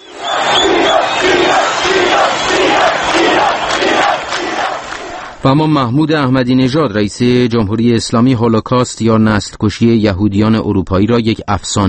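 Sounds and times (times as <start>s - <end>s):
demonstrators chanting the name of Iran: 0.0s - 5.4s
speech: 5.4s - 11.8s.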